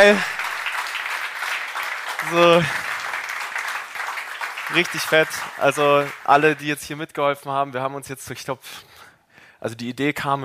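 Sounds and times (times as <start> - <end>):
speech: 0.0 - 0.3, 2.2 - 2.8, 4.7 - 9.0, 9.6 - 10.4
crowd clapping: 0.0 - 7.0.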